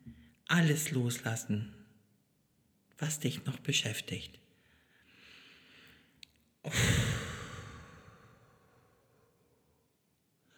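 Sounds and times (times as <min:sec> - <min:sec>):
speech: 0:00.5 - 0:01.8, 0:03.0 - 0:04.4, 0:06.6 - 0:06.9
person inhaling softly during a guided relaxation: 0:04.6 - 0:06.1, 0:06.7 - 0:09.3
long sighing exhale during a guided relaxation: 0:06.7 - 0:08.7.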